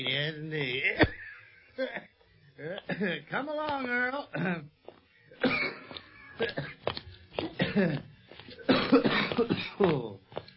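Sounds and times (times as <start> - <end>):
speech: 0.0 - 1.2, 1.8 - 2.0, 2.6 - 4.8, 6.4 - 6.8, 7.8 - 8.1, 8.9 - 10.2
man coughing fit: 0.8 - 2.1, 2.8 - 3.3, 4.3 - 4.7, 5.3 - 10.1.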